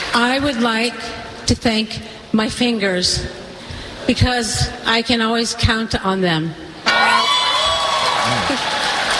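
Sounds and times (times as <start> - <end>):
speech: 0.1 - 3.4, 4.1 - 7.1
crowd cheering: 6.9 - 9.1
high whoops and shouted voices: 6.9 - 9.1.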